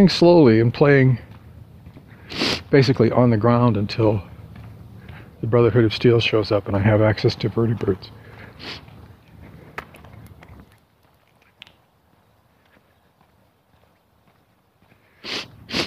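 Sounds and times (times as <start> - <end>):
speech: 0.0 - 1.2, 2.3 - 4.3, 5.4 - 8.9
sniffing with a runny nose: 2.1 - 2.7, 8.2 - 10.4, 14.9 - 15.8.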